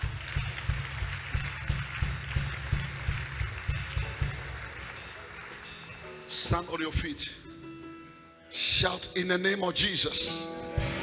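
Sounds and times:
people clapping: 0.0s - 6.2s
speech: 6.4s - 7.5s, 8.8s - 10.9s.

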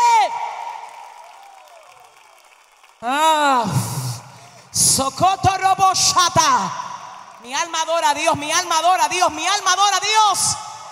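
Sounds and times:
loud audience applause and cheering: 0.0s - 3.4s
speech: 3.0s - 3.8s, 5.0s - 6.8s, 7.4s - 10.6s.

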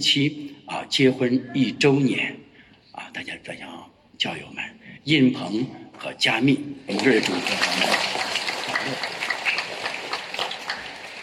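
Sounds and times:
speech: 0.0s - 2.4s, 3.1s - 9.2s
audience applause: 6.9s - 11.2s.

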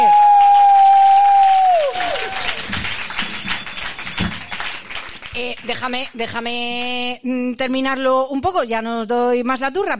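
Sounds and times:
audience applause after singing: 0.0s - 5.8s
speech: 5.7s - 9.9s.

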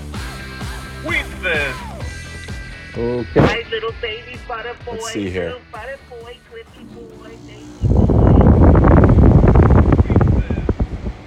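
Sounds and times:
speech: 3.0s - 8.2s
air conditioner running: 6.8s - 11.2s.

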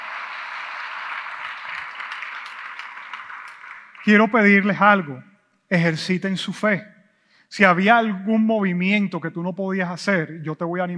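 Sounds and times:
church congregation applause during a service: 0.0s - 5.1s
speech: 4.0s - 6.9s, 7.5s - 10.9s.

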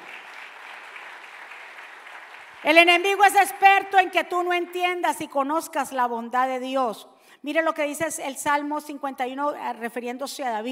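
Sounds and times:
audience applauding loudly: 0.0s - 3.0s
speech: 2.6s - 10.6s.

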